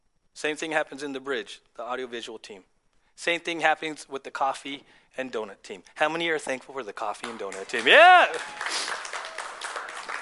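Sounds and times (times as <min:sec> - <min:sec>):
speech: 0:00.4 - 0:09.0
crowd applauding: 0:07.2 - 0:10.1
faint cheering voices: 0:07.8 - 0:10.1.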